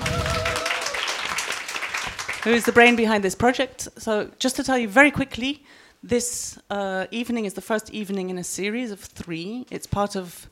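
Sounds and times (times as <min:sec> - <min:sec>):
audience applause: 0:00.0 - 0:03.0
speech: 0:02.4 - 0:10.5.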